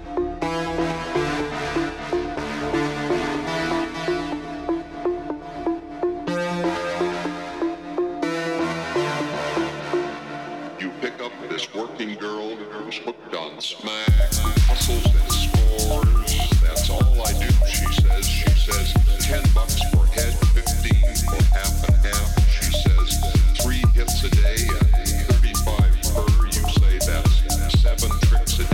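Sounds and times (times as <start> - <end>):
tonal music with voices at a Day of the Dead event in Tucson, Arizona: 0.0 - 28.7
loud fast drum beat: 14.1 - 28.7.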